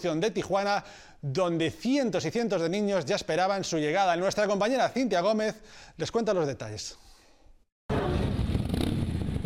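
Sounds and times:
speech: 0.0s - 7.1s
motorcycle caravan engines revving: 7.9s - 9.4s.

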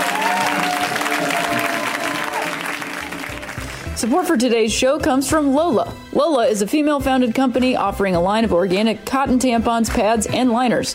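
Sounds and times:
audience applause for a comedian: 0.0s - 4.0s
speech: 4.0s - 10.9s.

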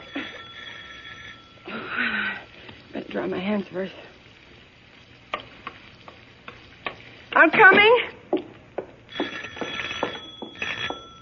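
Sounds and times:
doorbell ringing: 0.0s - 1.8s, 9.1s - 11.2s
running water hiss: 1.7s - 8.5s
speech: 3.2s - 4.2s, 7.4s - 8.1s.

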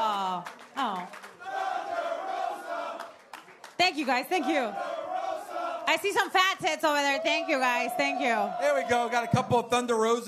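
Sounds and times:
crowd chanting a wrestler's name: 1.2s - 3.3s, 4.0s - 9.7s
speech: 4.0s - 5.0s, 5.9s - 10.2s.

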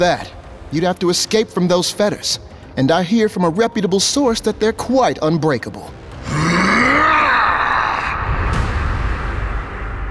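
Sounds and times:
speech: 0.0s - 6.4s
horrific monstrous scream: 6.2s - 8.8s.

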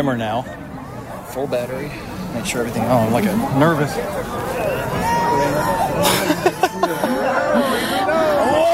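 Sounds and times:
speech: 0.0s - 0.6s, 1.3s - 6.5s
excited crowd chatter at eclipse: 0.0s - 8.7s
laughter: 2.8s - 8.7s
cheers and whoops: 4.6s - 8.7s.

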